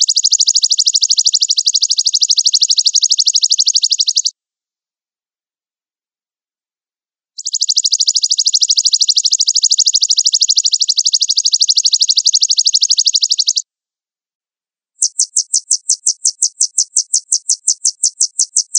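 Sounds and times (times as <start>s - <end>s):
sunbird song used as a lure recording: 0.0s - 4.4s, 7.4s - 13.6s, 15.0s - 18.7s.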